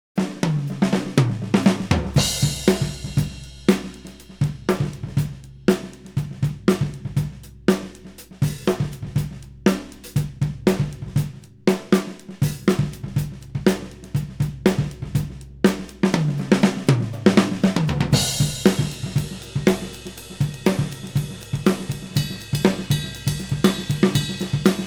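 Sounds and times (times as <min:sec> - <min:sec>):
isolated drums: 0:00.0 - 0:24.8.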